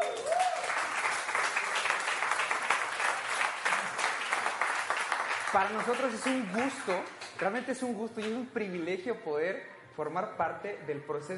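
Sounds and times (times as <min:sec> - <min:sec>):
audience applause: 0:00.0 - 0:07.6
speech: 0:05.5 - 0:11.3.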